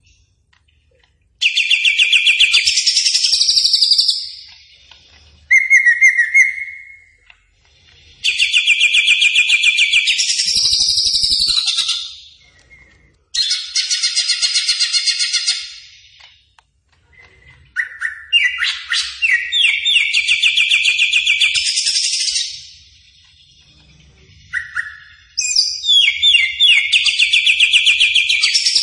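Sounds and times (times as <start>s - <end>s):
leafbird singing: 0.0s - 28.8s.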